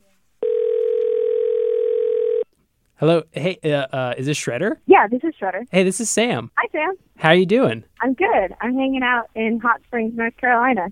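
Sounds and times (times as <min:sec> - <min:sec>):
telephone ringing for an outgoing call: 0:00.4 - 0:02.5
speech: 0:03.0 - 0:10.9.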